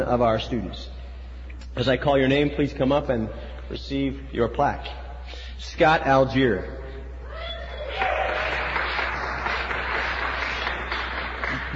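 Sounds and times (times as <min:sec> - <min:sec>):
speech: 0:00.0 - 0:01.0, 0:01.7 - 0:05.0, 0:05.6 - 0:06.8
audience applause: 0:07.8 - 0:11.7.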